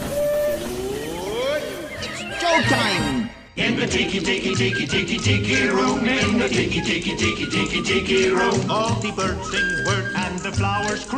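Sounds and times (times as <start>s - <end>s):
departing train whistle: 0.0s - 1.8s
speech: 2.5s - 11.1s.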